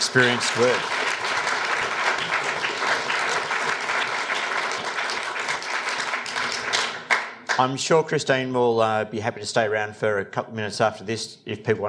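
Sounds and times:
audience applause after a speaker's talk: 0:00.0 - 0:07.7
speech: 0:00.1 - 0:01.1, 0:07.6 - 0:11.8.

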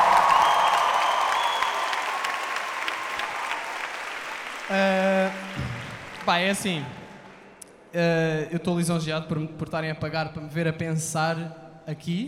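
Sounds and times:
live crowd clapping and cheering: 0:00.0 - 0:07.7
speech: 0:06.3 - 0:07.0, 0:07.9 - 0:12.2.

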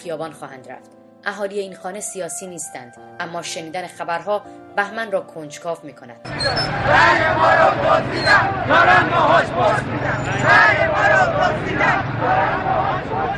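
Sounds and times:
speech: 0:00.0 - 0:13.3
protesters chanting in the street: 0:06.3 - 0:13.3
protesters shouting in the street: 0:06.3 - 0:13.3.

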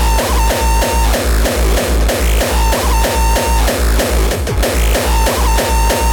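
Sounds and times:
heavily distorted drum machine at a music festival: 0:00.0 - 0:06.1.

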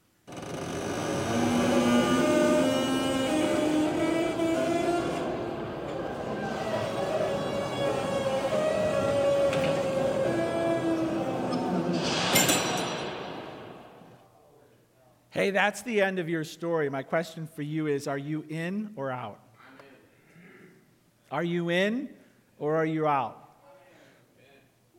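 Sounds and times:
heavy old palace door closing: 0:00.3 - 0:14.2
speech: 0:15.4 - 0:19.4, 0:21.3 - 0:23.4.

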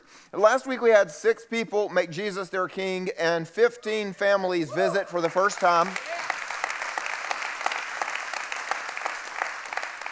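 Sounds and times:
speech: 0:00.3 - 0:06.2
crowd applauding: 0:04.8 - 0:10.1.

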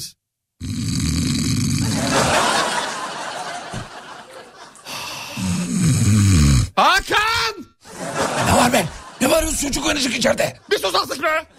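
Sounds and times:
speech: 0:00.0 - 0:00.8, 0:08.7 - 0:11.5
person snoring: 0:00.6 - 0:02.4, 0:04.8 - 0:06.8
laughter: 0:01.8 - 0:05.1, 0:07.8 - 0:11.5.

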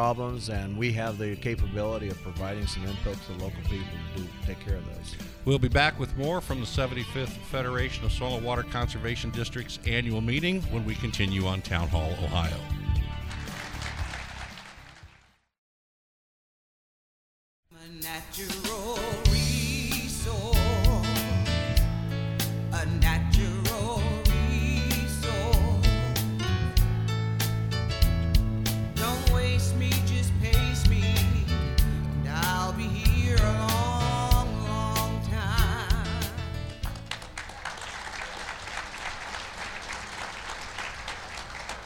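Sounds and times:
speech: 0:00.0 - 0:12.8
lively music: 0:00.0 - 0:15.3, 0:18.0 - 0:41.8
audience applause: 0:13.1 - 0:15.4, 0:36.8 - 0:41.8.

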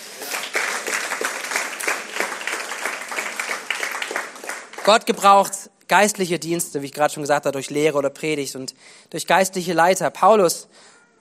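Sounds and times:
audience applause: 0:00.0 - 0:05.2
speech: 0:04.8 - 0:10.9.

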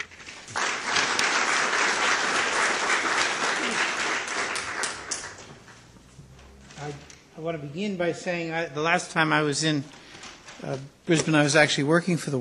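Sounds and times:
audience applause welcoming a speaker: 0:00.0 - 0:05.7
speech: 0:07.4 - 0:10.0, 0:10.6 - 0:12.3.

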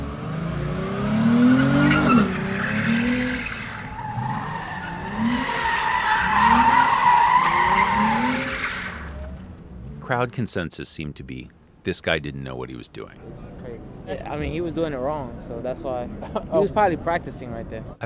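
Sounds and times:
car spinning donuts in a parking lot: 0:00.8 - 0:09.8
speech: 0:10.2 - 0:18.0.

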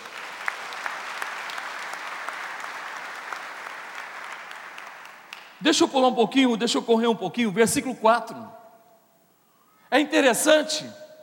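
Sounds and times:
audience applauding loudly: 0:00.0 - 0:05.6
speech: 0:05.6 - 0:08.6, 0:09.9 - 0:11.0.

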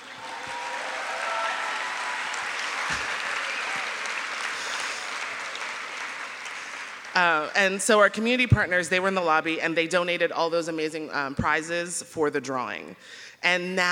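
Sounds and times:
crowd applause: 0:00.0 - 0:07.4
speech: 0:07.6 - 0:13.9.

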